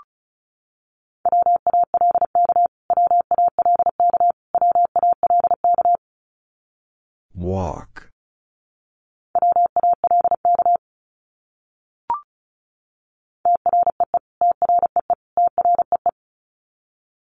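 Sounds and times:
Morse code tones sending a word: 0:01.3 - 0:06.0, 0:09.4 - 0:10.8, 0:13.5 - 0:16.1.

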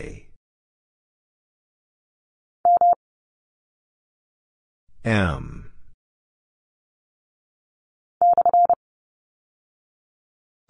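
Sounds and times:
morse code single character at 30 wpm: 0:02.7 - 0:03.0, 0:08.2 - 0:08.8.

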